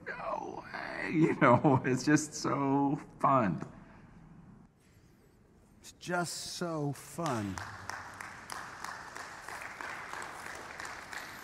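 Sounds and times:
speech: 0:01.0 - 0:03.8, 0:06.0 - 0:07.8
audience applause: 0:07.2 - 0:11.4.

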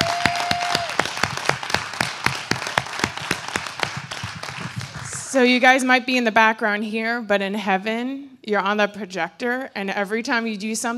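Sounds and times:
audience applause: 0:00.0 - 0:05.4
speech: 0:05.4 - 0:10.9.

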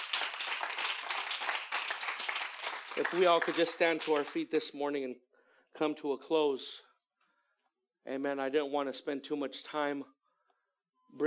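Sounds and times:
audience applause: 0:00.0 - 0:04.4
speech: 0:03.0 - 0:06.9, 0:08.0 - 0:10.2.

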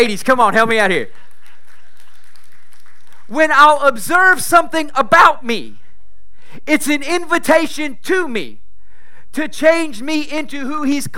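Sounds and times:
speech: 0:00.0 - 0:01.2, 0:03.3 - 0:05.8, 0:06.5 - 0:08.6, 0:09.3 - 0:11.1
audience hand clap of praise: 0:00.6 - 0:03.5.

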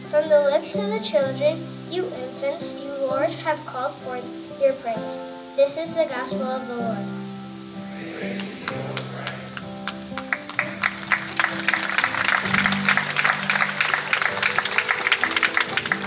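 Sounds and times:
speech: 0:00.1 - 0:07.2, 0:08.0 - 0:09.0
audience applauding after gospel reading: 0:08.0 - 0:16.0.

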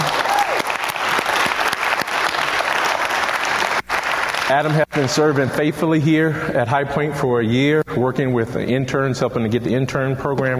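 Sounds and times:
audience round of applause: 0:00.0 - 0:05.4
speech: 0:04.5 - 0:10.5.

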